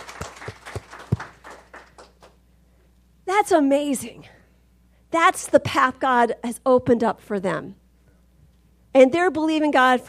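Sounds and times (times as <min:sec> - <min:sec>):
audience clapping: 0:00.0 - 0:02.4
speech: 0:03.4 - 0:04.4, 0:05.1 - 0:07.8, 0:09.0 - 0:10.0.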